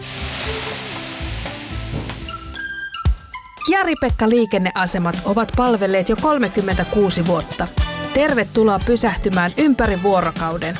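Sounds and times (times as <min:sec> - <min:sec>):
water sizzling on hot sauna stones: 0:00.0 - 0:02.8
speech: 0:03.6 - 0:10.7.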